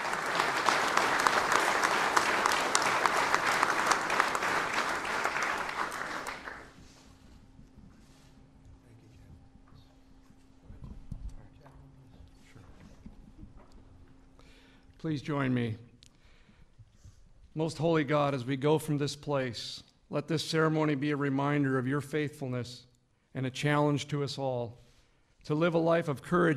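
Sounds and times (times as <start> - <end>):
audience applause at ceremony: 0.0 - 6.8
speech: 15.0 - 15.8, 17.6 - 24.8, 25.4 - 26.5.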